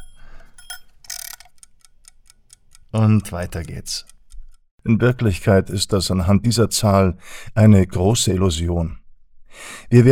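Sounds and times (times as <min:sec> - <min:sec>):
egg timer ticking: 0:00.0 - 0:04.6
speech: 0:02.9 - 0:04.2, 0:04.8 - 0:10.1.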